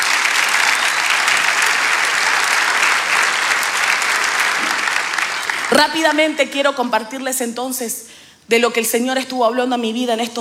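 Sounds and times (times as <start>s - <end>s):
audience applause: 0.0s - 6.0s
speech: 5.8s - 10.3s.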